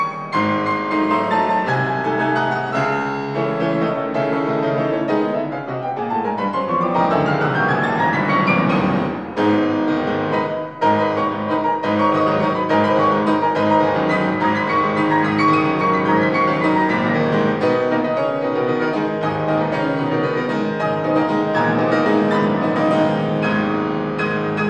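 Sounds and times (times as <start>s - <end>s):
piano: 0.0s - 24.6s.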